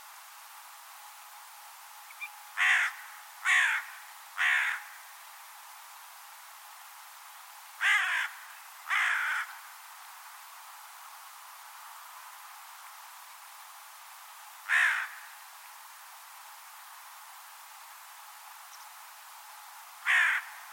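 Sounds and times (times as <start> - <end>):
faint hiss: 0.0 - 20.7
bird harsh cawing: 2.2 - 5.0, 7.8 - 9.6, 14.7 - 15.3, 20.0 - 20.7.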